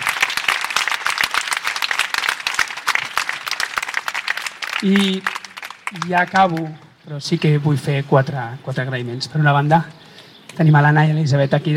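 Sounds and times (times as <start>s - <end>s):
audience applause: 0.0s - 6.7s
speech: 4.8s - 10.0s, 10.6s - 11.7s.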